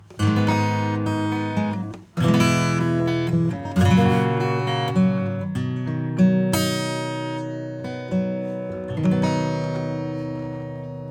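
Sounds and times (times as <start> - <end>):
acoustic instrument without EQ: 0.0 - 11.0.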